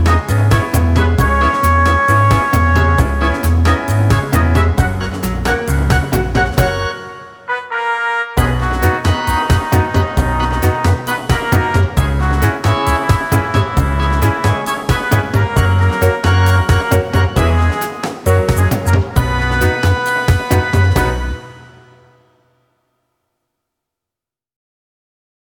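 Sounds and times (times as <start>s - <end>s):
karaoke singing: 0.0s - 7.0s, 8.4s - 21.6s.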